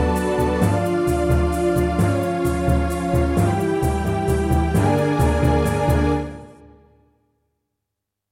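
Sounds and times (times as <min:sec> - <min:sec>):
Yamaha DTXpress wavetable drum sound: 0:00.0 - 0:06.3.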